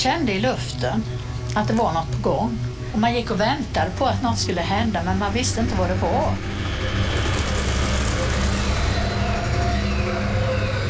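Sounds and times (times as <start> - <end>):
speech: 0.0 - 7.3
truck engine rumbling while driving through narrow streets: 6.0 - 10.8.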